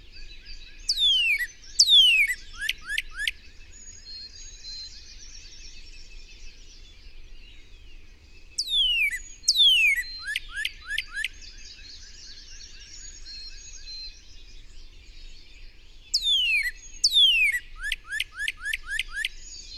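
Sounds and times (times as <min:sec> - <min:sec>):
bird chirping: 0:00.0 - 0:19.7.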